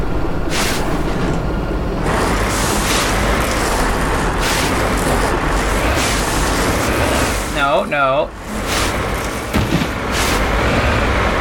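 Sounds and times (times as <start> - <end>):
video game vehicle engine rumble driving backwards: 0.0 - 11.3
thump: 9.5 - 10.0.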